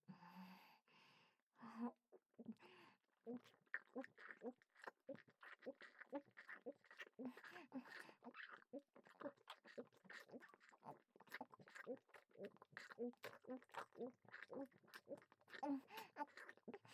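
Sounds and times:
oral sex sounds: 3.3s - 16.9s.

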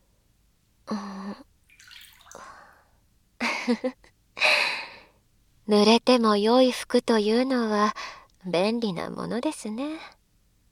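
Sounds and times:
water poured out to rinse someone off: 1.7s - 2.7s
speech: 3.7s - 4.6s, 5.7s - 10.2s.

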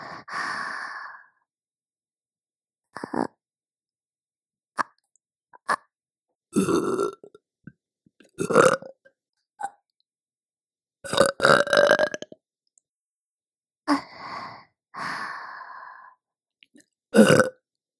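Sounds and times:
person burping for ASMR: 6.6s - 7.3s, 8.4s - 8.9s, 11.1s - 12.4s, 17.2s - 17.6s.

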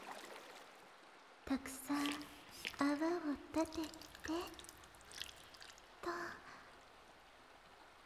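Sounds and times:
speech: 1.5s - 4.6s
hot water being poured: 1.5s - 6.5s.

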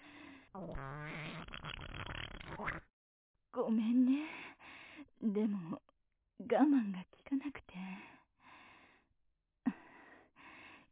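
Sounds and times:
long loud sputtering fart: 0.6s - 2.9s
speech: 0.6s - 2.9s, 3.6s - 4.4s, 5.2s - 5.8s, 6.5s - 8.1s.

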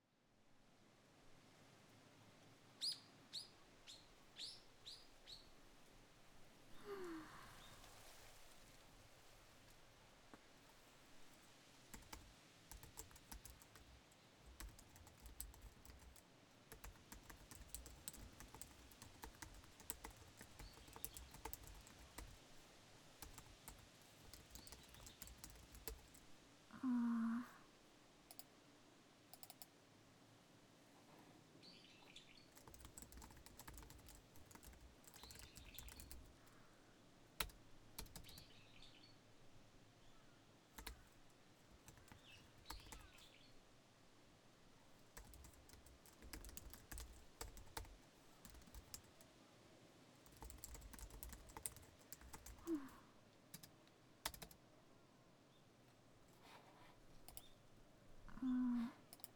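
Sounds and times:
wind: 0.0s - 59.3s
working at a PC: 11.9s - 22.5s, 23.2s - 26.2s, 29.4s - 29.7s, 32.5s - 36.5s, 37.4s - 38.4s, 40.8s - 41.2s, 41.8s - 43.3s, 45.1s - 49.2s, 50.2s - 54.6s, 57.3s - 57.5s, 59.1s - 59.3s.

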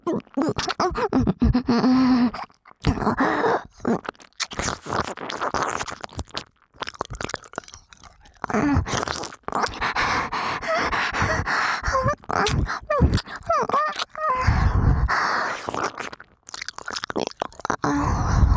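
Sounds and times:
saliva-heavy deep ear licking and sucking: 0.0s - 18.5s.

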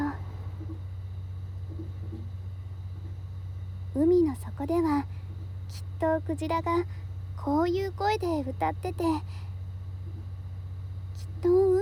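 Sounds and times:
train lounge car rumbling: 0.0s - 0.8s
speech: 4.0s - 9.4s, 11.4s - 11.8s.

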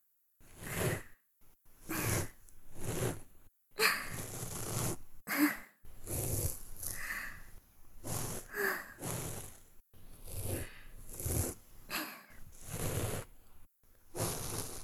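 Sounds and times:
binaural ear cleaning with sound effects: 0.5s - 1.1s, 1.8s - 5.0s, 6.0s - 11.6s, 12.5s - 13.4s, 14.1s - 14.8s.

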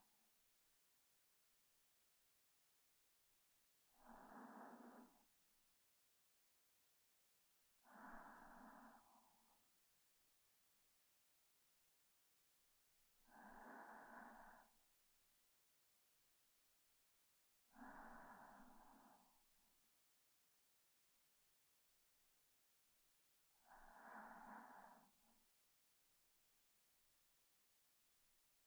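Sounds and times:
reversed breathing of a sleeping person: 4.0s - 5.2s, 7.9s - 9.6s, 13.3s - 14.8s, 17.8s - 19.3s, 23.6s - 25.3s.

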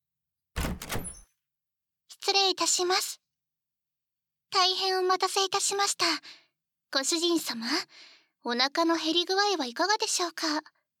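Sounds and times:
sliding door opening: 0.6s - 1.2s
speech: 2.2s - 3.2s, 4.5s - 10.8s.

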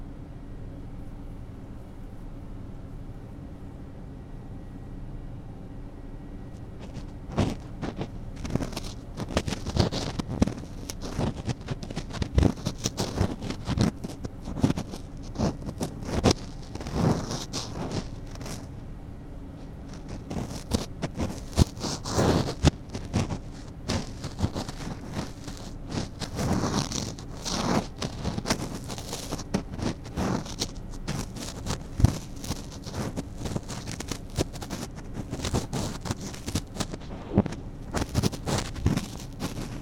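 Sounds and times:
ear cleaning with a cotton swab in the left ear: 6.7s - 18.8s, 19.6s - 39.8s.

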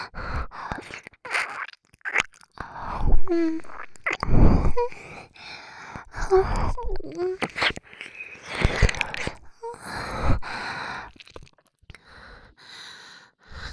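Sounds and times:
ear licking sounds: 0.4s - 5.2s, 5.9s - 9.6s, 11.0s - 12.0s.

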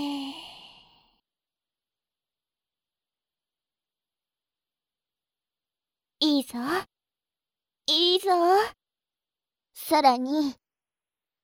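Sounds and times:
long exhale during a deep-breathing exercise: 0.0s - 1.2s
speech: 6.2s - 6.9s, 7.9s - 8.8s, 9.8s - 10.6s.

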